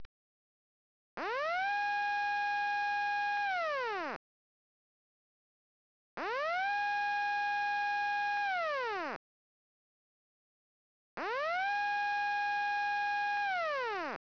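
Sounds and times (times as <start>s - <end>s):
tsunami siren: 1.2s - 4.2s, 6.2s - 9.2s, 11.2s - 14.2s.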